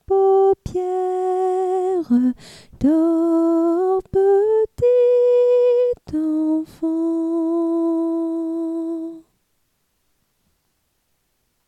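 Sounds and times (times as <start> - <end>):
soprano singing a lullaby: 0.0 - 9.3.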